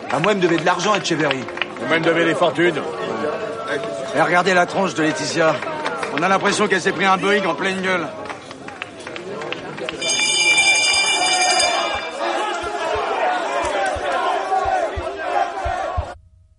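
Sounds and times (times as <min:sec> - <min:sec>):
speech: 0:00.1 - 0:02.9, 0:03.8 - 0:08.2
shrill steady tone: 0:10.0 - 0:13.0
people shouting on a stock exchange trading floor: 0:11.1 - 0:16.2.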